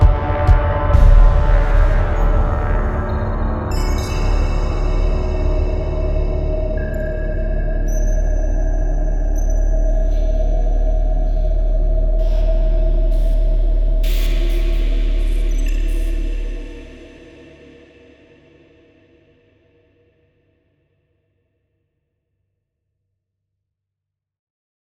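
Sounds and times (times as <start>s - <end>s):
cinematic ambient synth presets: 0.0s - 17.1s.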